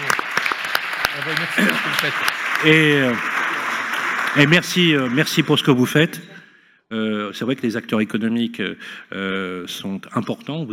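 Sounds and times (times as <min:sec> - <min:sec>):
audience applause: 0:00.0 - 0:06.0
speech: 0:01.2 - 0:03.4, 0:04.4 - 0:06.3, 0:06.9 - 0:10.7.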